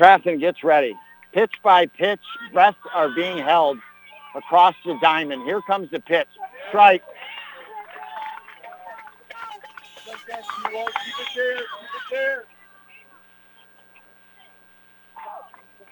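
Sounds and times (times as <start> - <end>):
spectator yelling out in left field: 0.0 - 7.1, 9.3 - 12.4
speech: 0.0 - 7.4, 10.1 - 12.5
laughter: 0.0 - 14.2.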